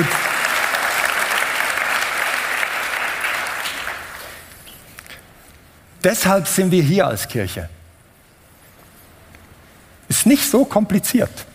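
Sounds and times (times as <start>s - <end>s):
audience applause: 0.0s - 4.4s
speech: 6.0s - 7.8s, 10.2s - 11.5s.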